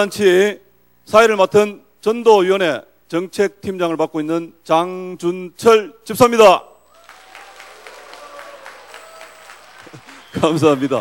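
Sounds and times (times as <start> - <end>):
speech: 0.0 - 6.7, 10.3 - 10.9
audience applause: 6.9 - 10.9.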